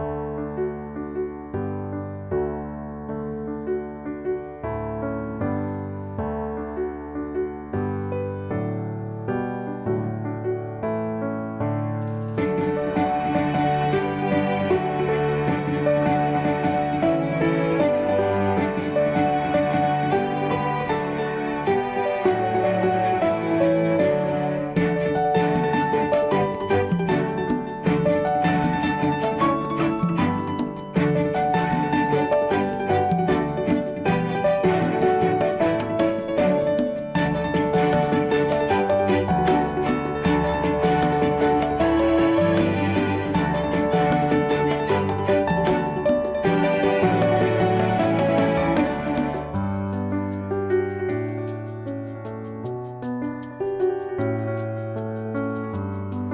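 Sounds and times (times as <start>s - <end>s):
music: 0.0s - 56.3s.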